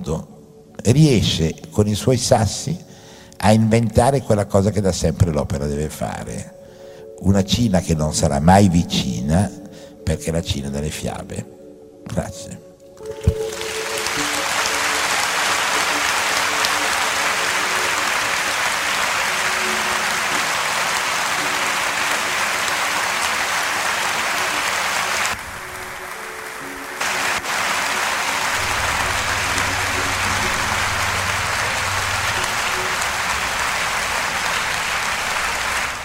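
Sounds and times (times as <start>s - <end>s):
speech: 0.0s - 6.6s, 7.2s - 13.4s
audience applause: 13.0s - 36.0s.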